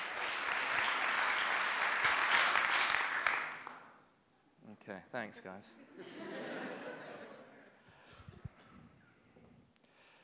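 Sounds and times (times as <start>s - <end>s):
audience applauding a speaker: 0.0s - 4.0s
speech: 4.9s - 6.4s
laughter: 5.4s - 7.8s.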